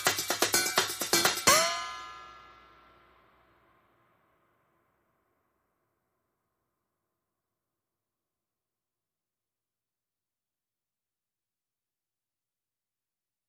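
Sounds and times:
high drums: 0.0s - 3.0s.

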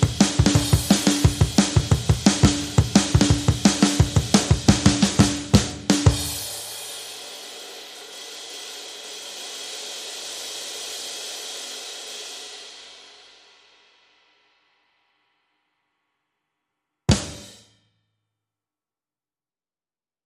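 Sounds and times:
drums: 0.0s - 15.4s, 17.1s - 17.8s.

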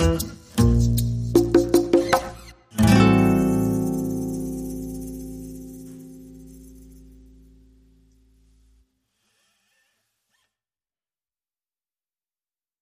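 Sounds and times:
drums: 0.0s - 2.4s
bass: 0.0s - 8.8s.

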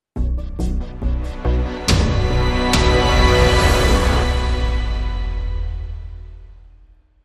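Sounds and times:
tension building music sting: 0.8s - 7.1s.

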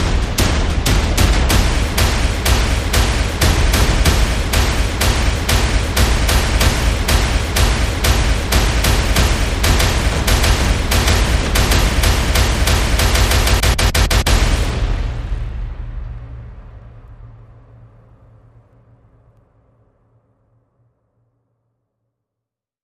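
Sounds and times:
percussion: 0.0s - 17.3s.

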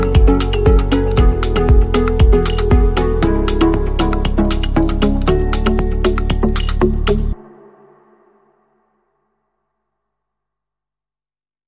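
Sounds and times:
tranquil percussion: 0.0s - 8.7s.

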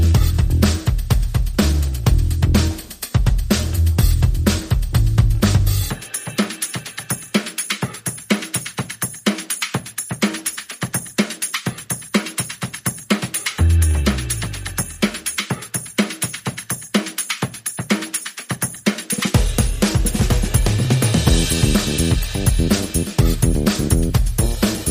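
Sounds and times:
bass: 0.0s - 6.0s, 13.6s - 15.2s, 19.8s - 24.9s
percussion: 0.0s - 24.9s.

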